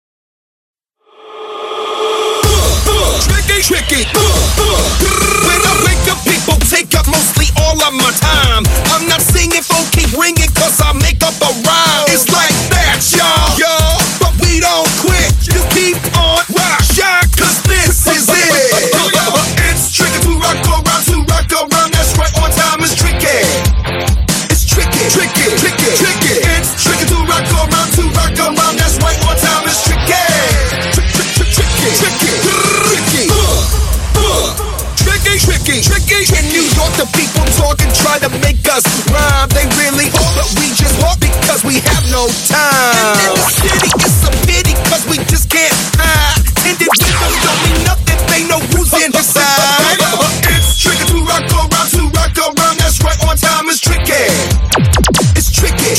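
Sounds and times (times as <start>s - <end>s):
cheer music mix: 1.7s - 55.9s.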